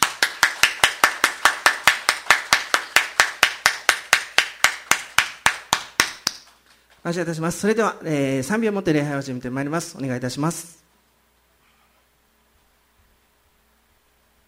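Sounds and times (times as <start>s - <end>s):
audience clapping in thanks: 0.0s - 6.6s
speech: 7.0s - 10.8s.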